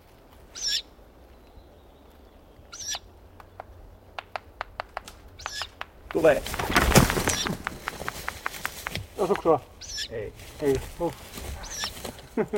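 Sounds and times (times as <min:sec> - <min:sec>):
Ural owl hissing calls: 0:00.6 - 0:00.9, 0:02.7 - 0:03.1, 0:05.4 - 0:05.8, 0:09.8 - 0:10.2, 0:11.6 - 0:12.1
sharp dry clicks: 0:03.4 - 0:06.7, 0:07.3 - 0:09.5
speech: 0:06.2 - 0:06.7, 0:09.2 - 0:11.3, 0:12.4 - 0:12.5.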